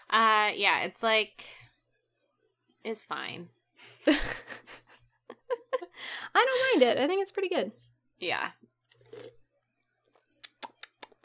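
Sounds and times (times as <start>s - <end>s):
speech: 0.1s - 1.6s, 2.8s - 4.8s, 6.0s - 9.3s
laughter: 4.1s - 6.0s
small sip of a drink: 8.9s - 9.5s
sharp little clicks and taps: 10.4s - 11.2s.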